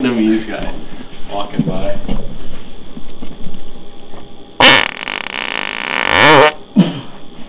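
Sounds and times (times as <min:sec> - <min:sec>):
powerful farts: 0:04.6 - 0:06.6.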